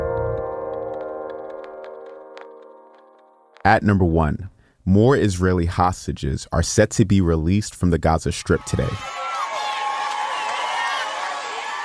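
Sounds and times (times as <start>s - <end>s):
speech: 3.6s - 9.2s
crowds cheering and whooping in southern Israel as vehicles carrying released hostages pass: 8.4s - 11.8s.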